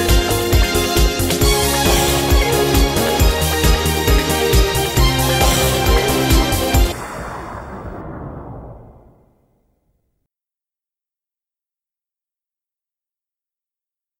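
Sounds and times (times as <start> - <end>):
backing track: 0.0 - 7.0.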